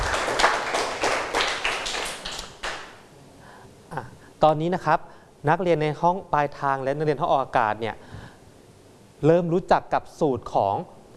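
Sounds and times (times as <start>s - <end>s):
class clapping for students: 0.0s - 3.0s
speech: 4.4s - 8.0s, 9.2s - 11.1s.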